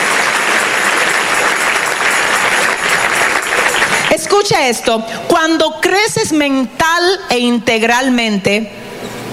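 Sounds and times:
audience applause: 0.0s - 4.4s
speech: 4.4s - 8.8s.

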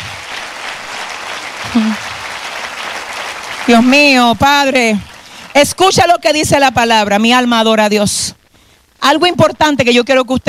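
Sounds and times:
audience applause: 0.0s - 5.8s
speech: 1.7s - 2.1s, 3.7s - 8.4s, 9.0s - 10.4s.

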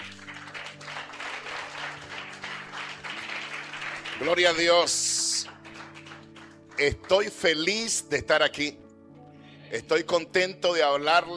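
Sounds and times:
audience applause: 0.0s - 7.3s
speech: 4.2s - 5.0s, 6.8s - 8.8s, 9.7s - 11.3s.

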